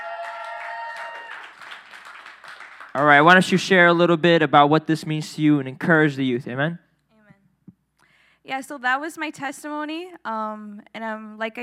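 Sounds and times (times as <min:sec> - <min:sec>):
audience hand clapping: 0:00.0 - 0:03.7
speech: 0:03.0 - 0:06.8, 0:08.5 - 0:11.6.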